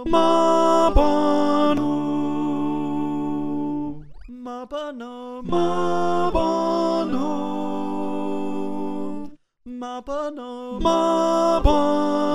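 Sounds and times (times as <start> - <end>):
alto choir singing: 0.0 - 4.0, 5.4 - 9.4, 10.7 - 12.3.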